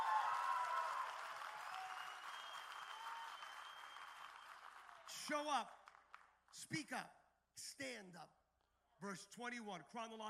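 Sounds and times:
audience applause: 0.0s - 6.2s
speech: 5.3s - 5.8s, 6.5s - 8.4s, 9.0s - 10.2s.

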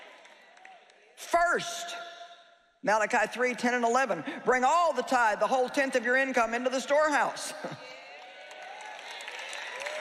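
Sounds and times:
church congregation clapping during a sermon on tithing: 0.0s - 1.6s, 7.6s - 9.9s
speech: 1.5s - 2.0s, 2.8s - 8.0s.

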